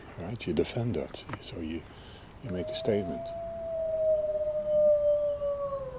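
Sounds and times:
speech: 0:00.2 - 0:03.4
wolves howling: 0:02.4 - 0:05.9.

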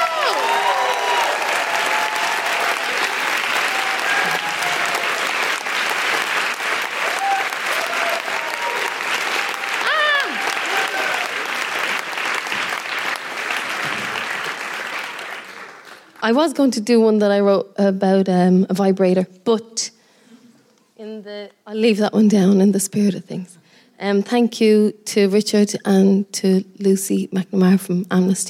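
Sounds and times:
audience whistles and cheers: 0:00.0 - 0:05.5, 0:06.8 - 0:11.6
audience clapping at a live performance poetry show: 0:00.0 - 0:16.3
speech: 0:16.3 - 0:20.0, 0:21.0 - 0:28.4.

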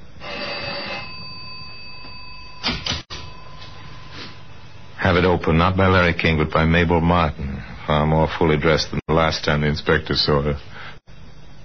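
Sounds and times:
apartment bell ringing: 0:00.2 - 0:04.0
speech: 0:05.0 - 0:10.7.

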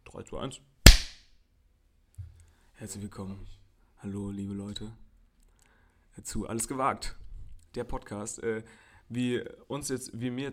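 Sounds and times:
speech: 0:00.1 - 0:00.8, 0:02.8 - 0:05.0, 0:06.2 - 0:10.5
loud sharp hand clap: 0:00.9 - 0:01.2.

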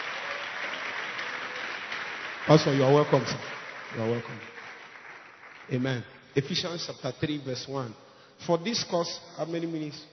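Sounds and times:
crowd clapping: 0:00.0 - 0:06.7
speech: 0:02.5 - 0:04.6, 0:05.7 - 0:10.1.

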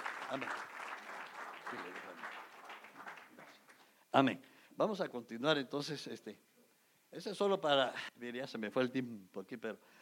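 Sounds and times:
audience applause: 0:00.0 - 0:03.8
speech: 0:00.3 - 0:00.8, 0:01.7 - 0:02.5, 0:04.1 - 0:06.5, 0:07.1 - 0:10.0.

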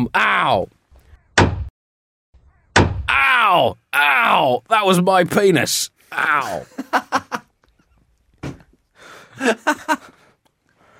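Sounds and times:
speech: 0:00.0 - 0:00.8, 0:03.6 - 0:07.4, 0:09.4 - 0:10.2
hammer thwacks: 0:01.4 - 0:01.7, 0:02.8 - 0:03.1
laughter: 0:06.2 - 0:07.9, 0:09.3 - 0:10.2.

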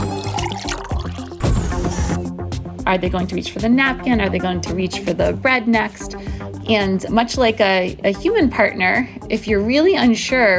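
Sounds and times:
juice being poured into a container: 0:00.1 - 0:01.4
speech: 0:02.9 - 0:10.5.

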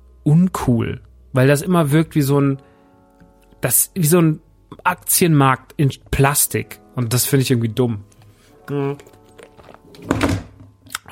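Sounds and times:
speech: 0:00.2 - 0:02.7, 0:03.6 - 0:08.1, 0:08.7 - 0:09.2, 0:10.0 - 0:10.4
mobile phone falling onto the floor: 0:09.8 - 0:10.7.

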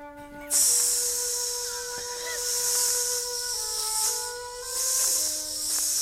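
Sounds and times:
faint steady tones humming: 0:00.0 - 0:06.0
voice imitating an asp snake hissing: 0:00.5 - 0:06.0.

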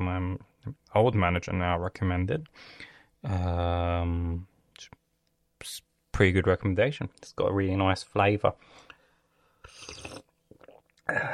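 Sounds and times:
speech: 0:00.4 - 0:05.0, 0:05.6 - 0:08.8, 0:11.1 - 0:11.3
slurping while sipping hot decaf tea: 0:09.7 - 0:10.3.

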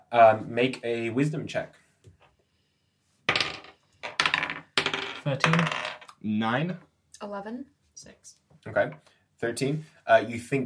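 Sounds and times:
speech: 0:00.1 - 0:01.8, 0:05.2 - 0:10.6
dice rattling across a hard surface: 0:03.3 - 0:06.1.

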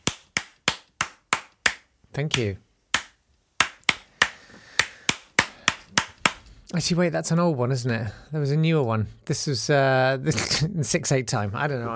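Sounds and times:
hands clapping: 0:00.0 - 0:06.5
speech: 0:02.2 - 0:02.6, 0:06.7 - 0:11.9.

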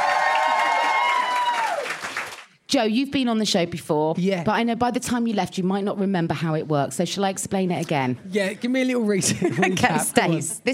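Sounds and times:
held whoop-like tone: 0:00.0 - 0:01.9
audience clapping and cheering: 0:00.0 - 0:02.6
speech: 0:02.7 - 0:10.7
laughter: 0:09.1 - 0:10.5.

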